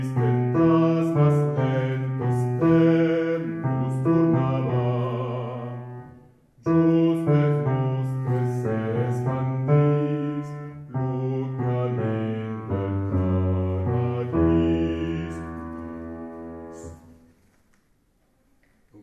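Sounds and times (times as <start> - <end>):
men singing: 0.0 - 6.0, 6.7 - 15.6.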